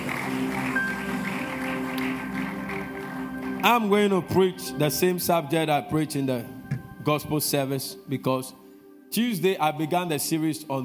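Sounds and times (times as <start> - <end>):
audience clapping: 0.0 - 4.4
speech: 3.6 - 10.8.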